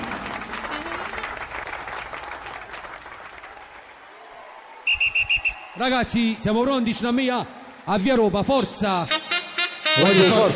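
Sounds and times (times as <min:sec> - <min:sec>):
audience applause: 0:00.0 - 0:08.1
audience whistling: 0:04.8 - 0:05.9
speech: 0:05.8 - 0:09.2, 0:10.0 - 0:10.5.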